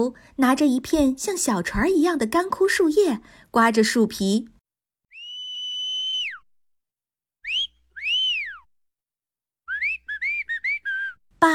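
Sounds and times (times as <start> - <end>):
speech: 0.0 - 4.6
high whistling: 5.1 - 6.5, 7.4 - 8.7, 9.7 - 11.2.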